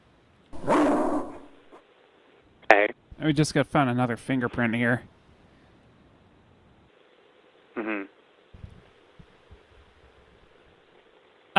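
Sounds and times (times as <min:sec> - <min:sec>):
detection dog barking at an investigation scene: 0:00.6 - 0:01.6
speech: 0:03.2 - 0:05.1.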